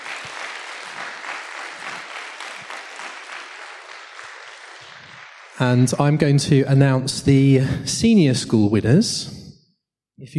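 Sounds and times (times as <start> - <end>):
audience applause: 0.0 - 5.8
speech: 5.6 - 9.4.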